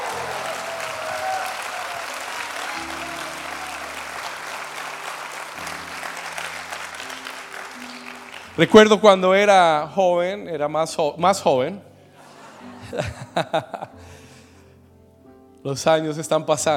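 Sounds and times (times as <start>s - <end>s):
audience applauding loudly: 0.0s - 9.2s
speech: 8.6s - 11.9s, 12.9s - 14.0s, 15.6s - 16.7s
laughter: 12.2s - 14.0s.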